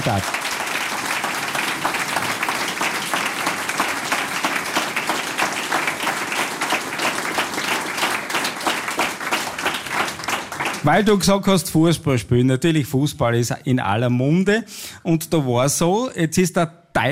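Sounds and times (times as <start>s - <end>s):
speech: 0.0s - 0.5s, 10.8s - 17.0s
large audience applause: 0.0s - 11.2s.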